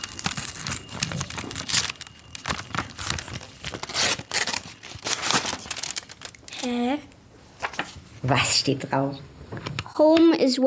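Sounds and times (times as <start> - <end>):
golden paper envelope crinkling and tearing as it is opened: 0.0 - 6.9, 7.6 - 8.0
speech: 8.3 - 9.3, 10.0 - 10.6.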